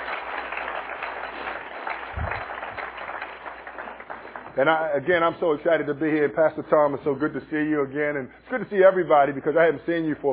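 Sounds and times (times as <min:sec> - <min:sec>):
audience applause: 0:00.0 - 0:04.9
speech: 0:04.6 - 0:10.3.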